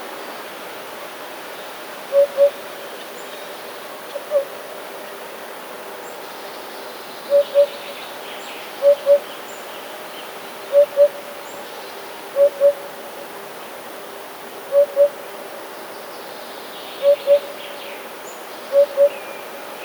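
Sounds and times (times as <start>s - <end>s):
Eurasian hoopoe hooting: 2.1s - 2.6s, 7.3s - 7.8s, 8.8s - 9.2s, 10.7s - 11.3s, 12.4s - 12.9s, 14.7s - 15.2s, 17.0s - 17.6s, 18.7s - 19.2s.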